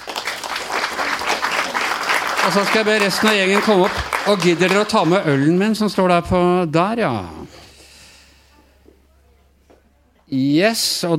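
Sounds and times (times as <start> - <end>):
audience applause: 0.0 - 5.8
speech: 2.4 - 7.6, 10.3 - 11.1.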